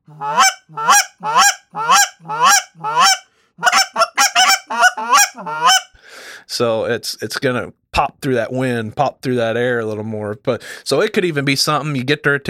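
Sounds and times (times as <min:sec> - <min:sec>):
speech: 0:00.1 - 0:00.4, 0:06.6 - 0:12.4
straight meat honker goose call honking: 0:00.1 - 0:05.9.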